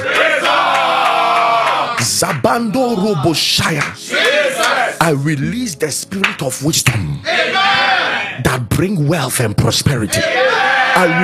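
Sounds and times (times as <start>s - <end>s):
many voices shouting together: 0.0s - 2.0s, 4.0s - 5.0s, 7.2s - 8.4s, 10.1s - 11.2s
large audience clapping: 0.0s - 2.6s, 3.6s - 4.9s
speech: 2.0s - 7.8s, 8.4s - 11.2s.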